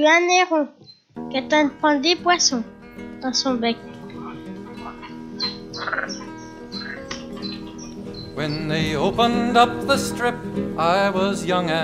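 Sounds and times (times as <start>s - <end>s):
speech: 0.0s - 3.9s, 8.4s - 11.8s
frogs croaking in a pond: 2.3s - 9.8s.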